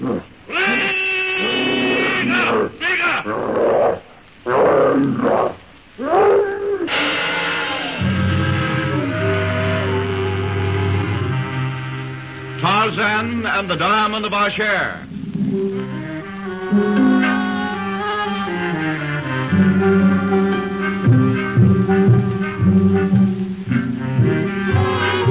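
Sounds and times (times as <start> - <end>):
speech: 0.1 - 0.4, 13.6 - 15.1
savage brute's ear-splitting shriek: 0.1 - 11.3
steady sustained droning tones: 6.8 - 13.9, 15.0 - 25.2.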